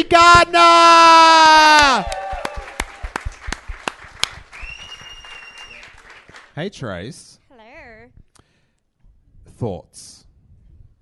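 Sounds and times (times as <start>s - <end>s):
speech: 0.0s - 1.3s, 6.6s - 7.4s, 9.6s - 10.1s
audience applause: 1.8s - 6.6s.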